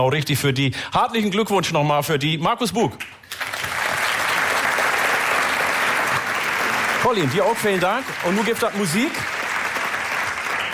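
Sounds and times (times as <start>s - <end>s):
speech: 0.0s - 3.5s, 7.1s - 9.4s
audience applause for a band on stage: 3.3s - 10.7s.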